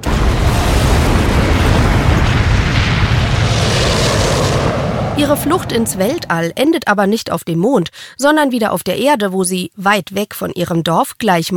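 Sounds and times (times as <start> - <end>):
rocket engine roaring through a launch: 0.0 - 6.8
speech: 5.2 - 11.5.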